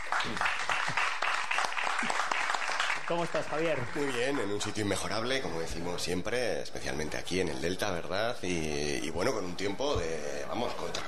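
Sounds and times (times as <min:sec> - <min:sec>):
audience applause for a guest at an outdoor Saturday-morning gathering in the Ebro Delta: 0:00.0 - 0:05.0
speech: 0:00.2 - 0:00.6, 0:03.1 - 0:11.0.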